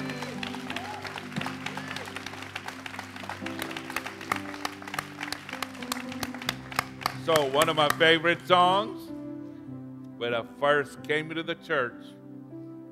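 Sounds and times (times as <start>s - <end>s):
audience clapping: 0.0s - 8.4s
speech: 7.3s - 9.1s, 10.2s - 12.2s.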